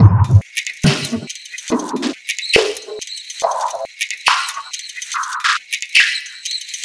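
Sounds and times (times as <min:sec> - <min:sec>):
vinyl record loop: 0:00.0 - 0:04.4.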